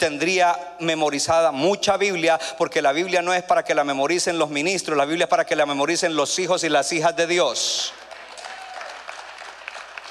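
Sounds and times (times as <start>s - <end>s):
speech: 0.0s - 8.1s
audience applause: 7.9s - 10.1s.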